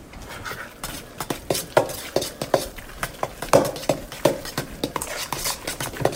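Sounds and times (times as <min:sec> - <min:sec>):
utensil clinking and scraping against bowl mixing ground turkey for meatballs: 0:00.5 - 0:06.1.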